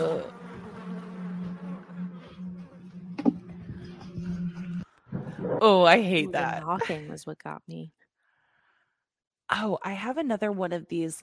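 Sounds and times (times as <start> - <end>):
flies buzzing: 0.0 - 6.6
speech: 5.6 - 8.0, 9.5 - 11.2.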